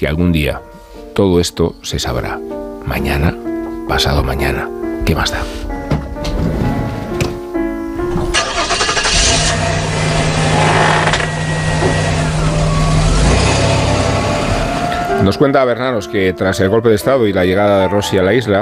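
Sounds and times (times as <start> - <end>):
speech: 0.0 - 5.6, 15.2 - 18.6
pickup truck engine starting and running at night: 5.7 - 15.3
low droning hum: 9.3 - 14.7.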